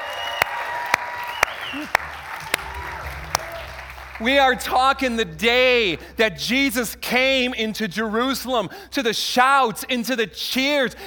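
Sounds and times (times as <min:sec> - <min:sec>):
audience applause: 0:00.0 - 0:05.0
speech: 0:01.7 - 0:02.1, 0:04.2 - 0:11.0.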